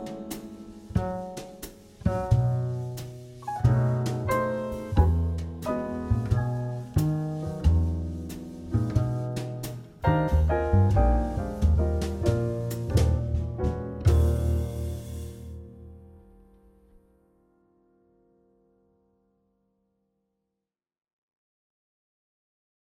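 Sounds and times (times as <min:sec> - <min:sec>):
major two five one chord progressions in swing: 0:00.0 - 0:16.3.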